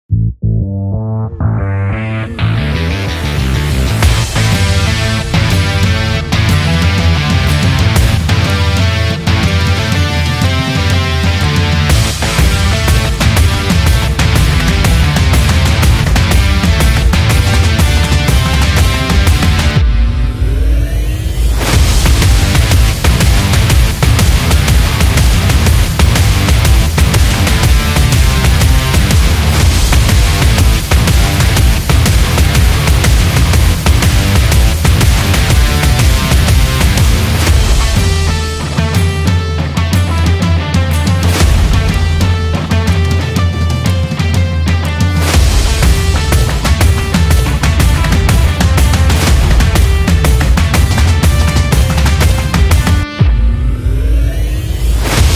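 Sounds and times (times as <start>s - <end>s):
powerful rock background music for sports and trailers: 1.2s - 55.3s.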